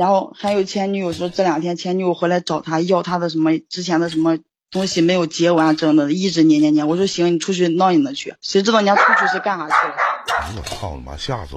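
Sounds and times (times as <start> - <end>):
speech: 0.0 - 11.5
dog barking: 8.9 - 10.6.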